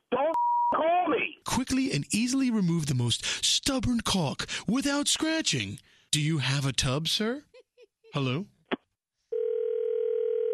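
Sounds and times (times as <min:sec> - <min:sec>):
speech: 0:00.8 - 0:07.5, 0:08.1 - 0:08.6
telephone dial tone after dropped call: 0:09.3 - 0:10.5.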